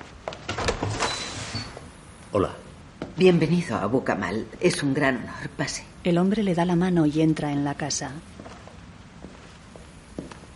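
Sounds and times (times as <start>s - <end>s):
front door opening: 0.4s - 1.9s
speech: 2.3s - 2.6s, 3.2s - 8.4s.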